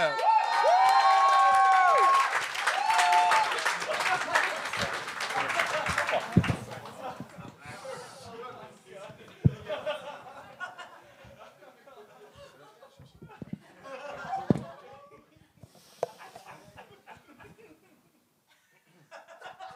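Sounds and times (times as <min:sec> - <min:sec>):
crowd applause and cheering: 0:00.0 - 0:08.3
laughter: 0:03.2 - 0:19.7.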